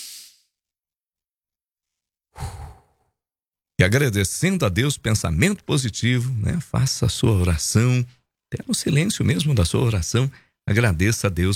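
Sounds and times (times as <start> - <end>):
loud airy breath during a guided breathing exercise: 2.4 - 3.1
speech: 3.8 - 11.5.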